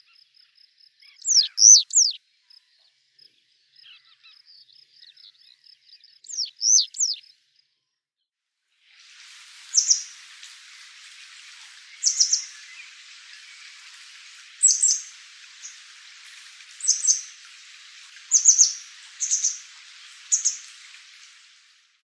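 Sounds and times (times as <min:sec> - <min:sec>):
citrine wagtail calling: 0:01.1 - 0:02.2, 0:06.3 - 0:07.2, 0:08.9 - 0:21.9.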